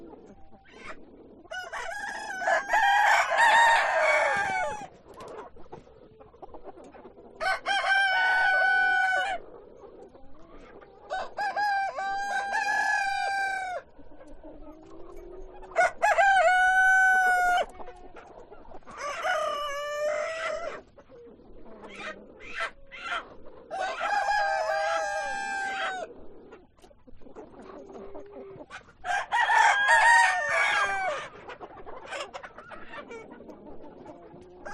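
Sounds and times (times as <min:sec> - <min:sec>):
hens clucking: 0:00.0 - 0:34.7
roosters crowing: 0:01.5 - 0:04.9, 0:07.4 - 0:09.4, 0:11.1 - 0:14.0, 0:15.6 - 0:17.8, 0:18.8 - 0:20.8, 0:23.1 - 0:26.2, 0:29.0 - 0:31.4, 0:34.6 - 0:34.7.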